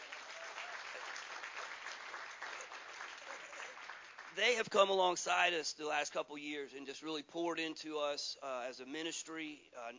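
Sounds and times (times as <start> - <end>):
audience applause: 0.0 - 4.4
speech: 4.4 - 9.9.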